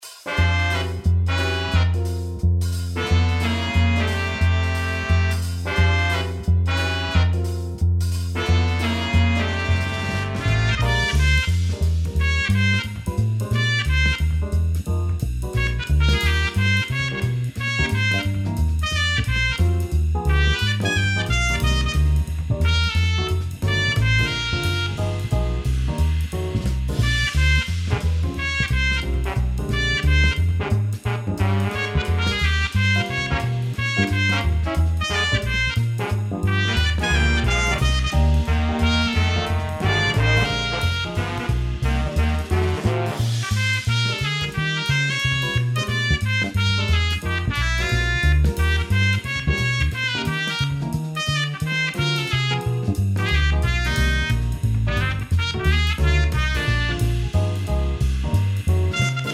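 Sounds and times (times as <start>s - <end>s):
blues music: 0.0s - 59.3s.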